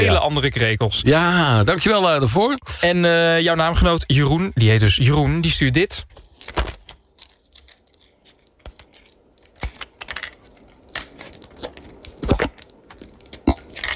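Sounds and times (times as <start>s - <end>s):
speech: 0.0s - 6.7s
medication pills being laid out: 6.4s - 13.9s.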